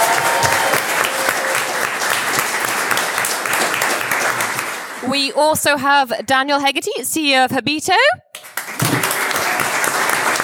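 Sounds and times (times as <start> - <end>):
audience applause: 0.0 - 5.0, 8.4 - 10.4
speech: 5.1 - 8.3.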